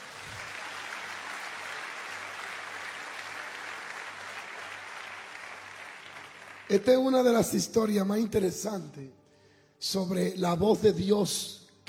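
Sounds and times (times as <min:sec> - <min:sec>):
audience applause: 0:00.0 - 0:07.2
speech: 0:06.7 - 0:09.2, 0:09.8 - 0:11.8.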